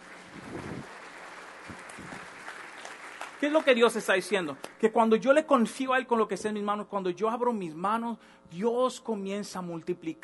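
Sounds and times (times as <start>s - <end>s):
audience applause: 0.0s - 4.6s
speech: 3.4s - 10.2s.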